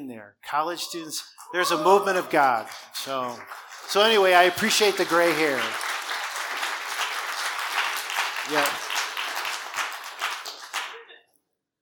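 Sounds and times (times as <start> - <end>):
speech: 0.0 - 5.9, 8.5 - 8.8
audience clapping: 1.3 - 11.3.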